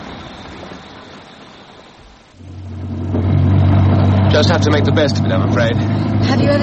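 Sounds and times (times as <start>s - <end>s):
heavy rain: 0.0s - 6.6s
car engine accelerating: 2.2s - 6.6s
speech: 4.4s - 6.6s.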